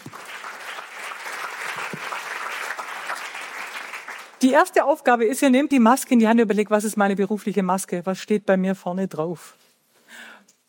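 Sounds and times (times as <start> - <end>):
group of people clapping: 0.0 - 4.6
speech: 4.4 - 9.6.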